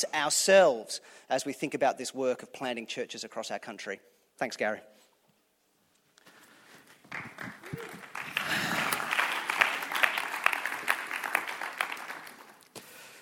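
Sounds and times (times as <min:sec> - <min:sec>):
speech: 0:00.0 - 0:05.0, 0:07.1 - 0:07.9
QTC students clapping: 0:06.9 - 0:12.8.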